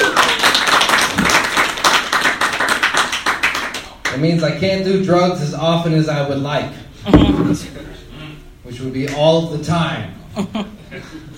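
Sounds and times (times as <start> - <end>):
applause: 0.0 - 4.2
speech: 4.2 - 7.9, 8.7 - 11.3.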